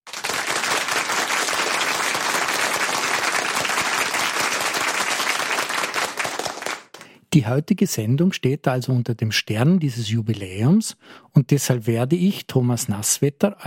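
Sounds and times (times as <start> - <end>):
strong applause: 0.0 - 7.1
speech: 7.3 - 13.6.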